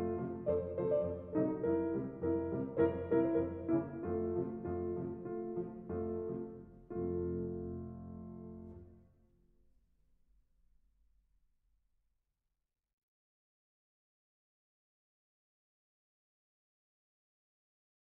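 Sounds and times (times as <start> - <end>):
grand piano: 0.0 - 9.1.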